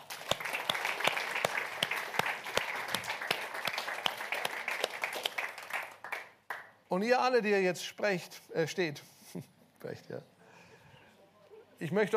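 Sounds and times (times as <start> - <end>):
audience applause: 0.0 - 6.7
speech: 6.9 - 10.4, 11.8 - 12.1.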